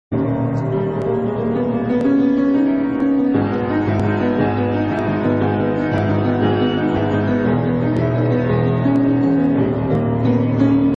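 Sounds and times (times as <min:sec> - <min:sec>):
creepy song: 0:00.1 - 0:10.9.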